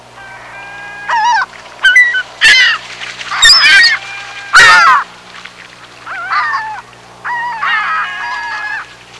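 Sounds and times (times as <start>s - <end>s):
birds honking: 0.0s - 9.1s
low steady hum: 0.0s - 9.1s.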